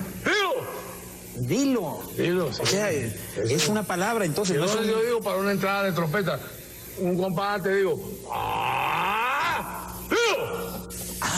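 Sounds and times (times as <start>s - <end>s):
speech: 1.4s - 8.7s
man's long shout: 8.3s - 10.7s.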